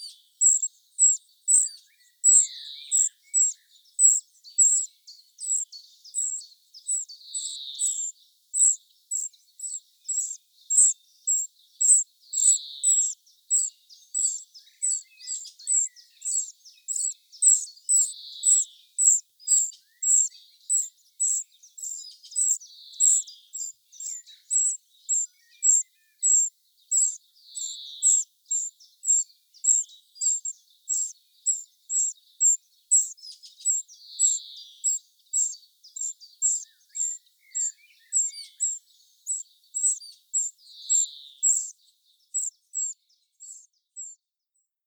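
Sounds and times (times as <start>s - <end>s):
Eurasian wren calls: 0.0s - 44.2s.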